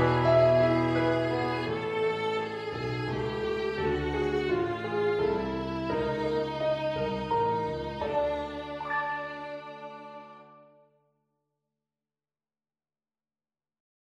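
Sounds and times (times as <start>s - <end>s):
piano backing track: 0.0s - 10.8s
violin backing track: 0.0s - 10.8s.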